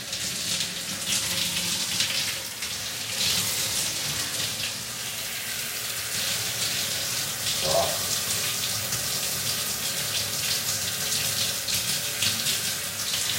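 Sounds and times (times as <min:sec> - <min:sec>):
water running while hair is being washed: 0:00.0 - 0:13.3.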